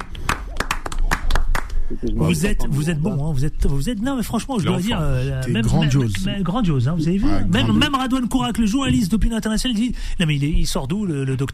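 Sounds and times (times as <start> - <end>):
audience hand claps applauding a guest: 0.0 - 1.8
speech: 2.0 - 11.5.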